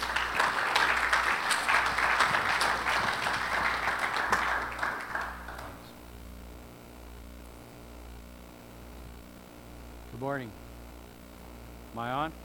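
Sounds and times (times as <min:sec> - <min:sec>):
church congregation applause welcoming a guest speaker at Grace Fellowship Church: 0:00.0 - 0:05.9
speech: 0:10.3 - 0:10.6, 0:12.0 - 0:12.4.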